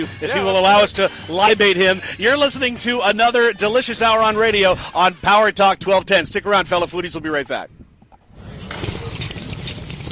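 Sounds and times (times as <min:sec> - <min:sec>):
speech: 0:00.0 - 0:07.8
loud slurp: 0:08.3 - 0:10.0.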